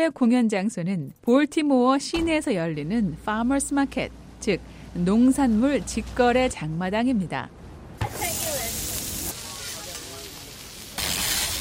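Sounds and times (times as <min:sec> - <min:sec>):
speech: 0:00.0 - 0:08.4
food sizzling at a food truck: 0:08.0 - 0:11.6.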